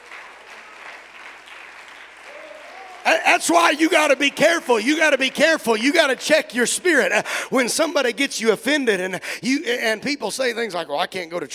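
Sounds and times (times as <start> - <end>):
audience clapping hands: 0.0 - 8.2
speech: 3.2 - 11.5.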